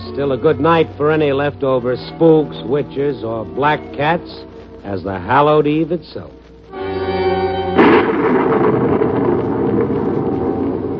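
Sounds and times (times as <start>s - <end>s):
speech: 0.2s - 6.4s
heavy rain: 6.7s - 10.9s.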